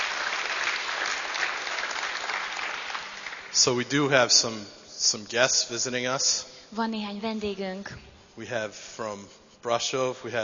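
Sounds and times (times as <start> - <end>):
audience applauding: 0.0 - 3.8
speech: 3.6 - 10.4.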